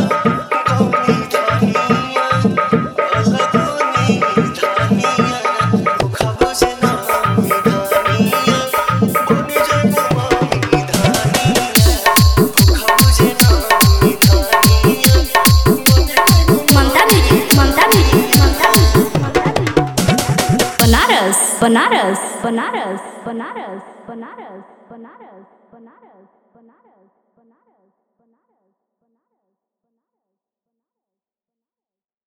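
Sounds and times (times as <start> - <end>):
Bhakti devotional DJ remix song: 0.0 - 24.8.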